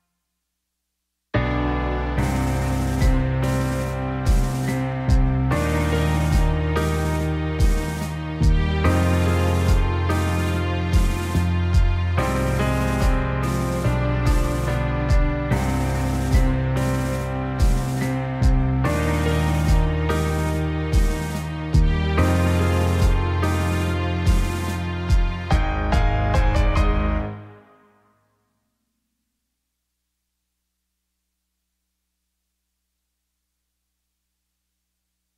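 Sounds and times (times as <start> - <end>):
karaoke instrumental music: 1.4 - 27.9.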